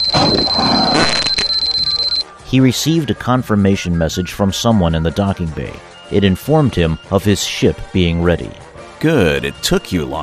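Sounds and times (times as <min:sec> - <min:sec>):
comlink ringtone: 0:00.0 - 0:02.3
speech: 0:02.5 - 0:10.2.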